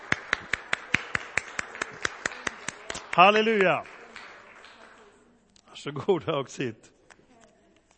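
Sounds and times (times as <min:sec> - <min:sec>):
audience clapping hands: 0:00.0 - 0:05.2
speech: 0:03.2 - 0:03.9, 0:05.8 - 0:06.9.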